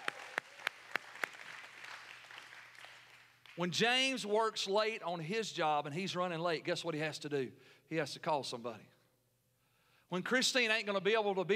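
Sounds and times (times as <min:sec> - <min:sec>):
audience applause: 0:00.0 - 0:03.6
speech: 0:03.6 - 0:08.9, 0:10.1 - 0:11.5.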